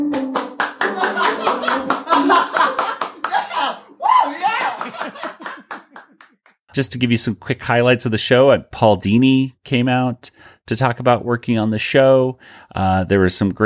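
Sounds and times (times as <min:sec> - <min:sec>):
audience clapping: 0:00.0 - 0:06.6
audience laughing: 0:00.6 - 0:06.3
speech: 0:06.8 - 0:13.6.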